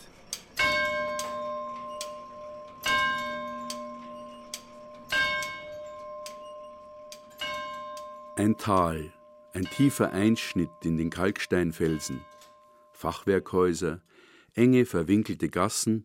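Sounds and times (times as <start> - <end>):
tower clock mechanical ticking: 0.0 - 12.6
tower clock bell striking: 0.0 - 13.2
speech: 8.4 - 12.3, 13.0 - 16.0.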